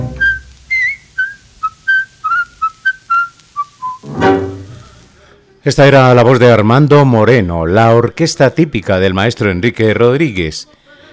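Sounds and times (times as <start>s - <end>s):
human whistling in a tango recording: 0.0s - 4.1s
speech: 5.6s - 10.8s.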